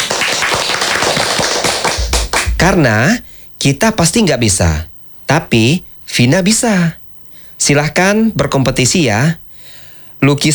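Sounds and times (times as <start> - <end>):
children clapping at a painting competition: 0.0 - 3.0
dull taps and thumps: 2.0 - 3.2
speech: 2.6 - 7.0, 7.6 - 9.4, 10.2 - 10.5.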